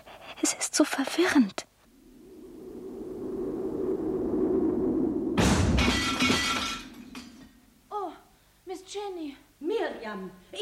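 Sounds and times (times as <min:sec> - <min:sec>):
speech: 0:00.8 - 0:01.7, 0:08.9 - 0:10.6
low wind-like rumble: 0:01.7 - 0:07.9.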